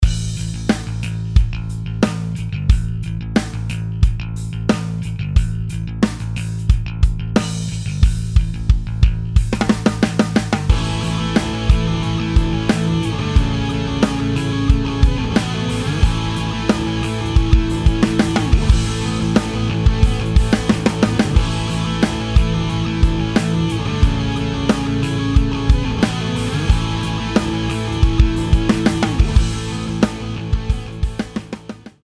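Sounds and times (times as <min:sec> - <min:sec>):
Premier birch drum kit: 0:00.0 - 0:32.0.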